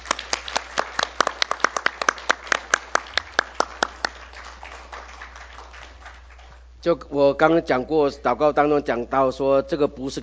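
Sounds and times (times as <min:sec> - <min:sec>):
audience clapping for new deacons: 0:00.0 - 0:06.7
speech: 0:06.8 - 0:10.2.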